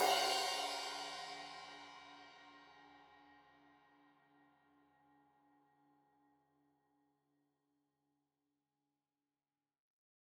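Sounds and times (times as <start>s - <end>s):
15 inch crash cymbal edge hit: 0.0s - 2.3s.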